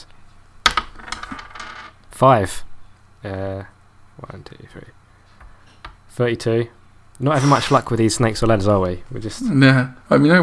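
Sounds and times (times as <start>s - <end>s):
dice rolled in board game clattering: 0.7s - 1.9s
speech: 2.2s - 5.0s, 6.2s - 10.4s.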